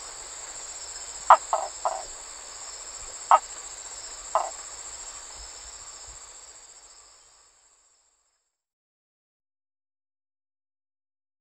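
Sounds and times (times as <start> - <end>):
insect drone: 0.0 - 8.6
map tree frog knocking calls: 1.3 - 2.2, 3.0 - 3.5, 4.3 - 4.6.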